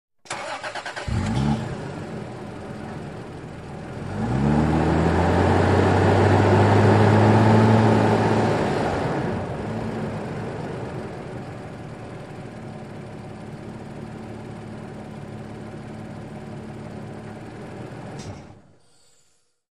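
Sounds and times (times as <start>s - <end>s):
SUV engine starting and accelerating: 0.3s - 18.8s.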